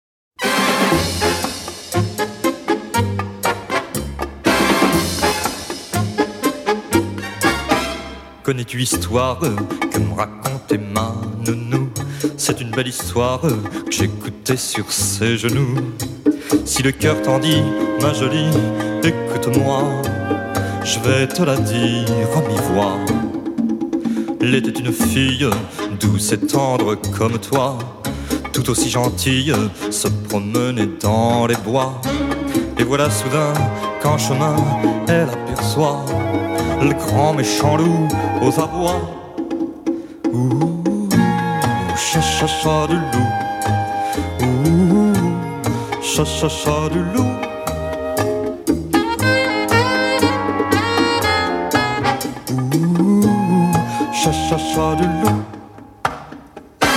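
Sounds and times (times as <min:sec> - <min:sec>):
cha-cha-cha music: 0:00.4 - 0:56.9.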